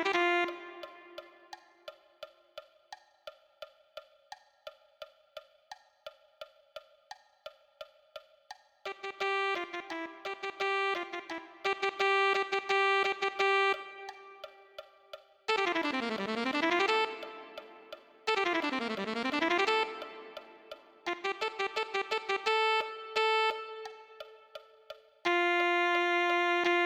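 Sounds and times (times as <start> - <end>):
alto saxophone: 0.0 - 1.6, 8.9 - 14.9, 15.5 - 24.6, 25.2 - 26.8.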